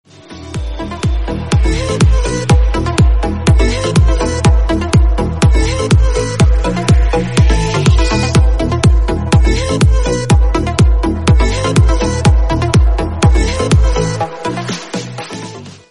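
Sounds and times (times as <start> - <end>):
electro ringtone: 0.6 - 15.2.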